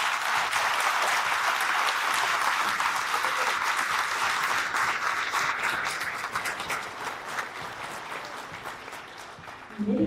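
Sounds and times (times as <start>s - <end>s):
crowd applauding: 0.0s - 9.9s.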